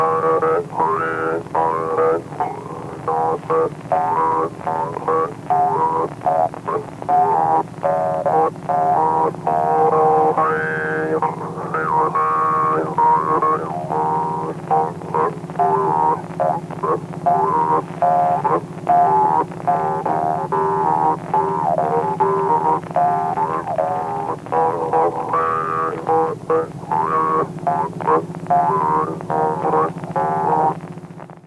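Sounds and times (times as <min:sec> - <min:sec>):
Mapuche trompe horn call: 0:00.0 - 0:30.8.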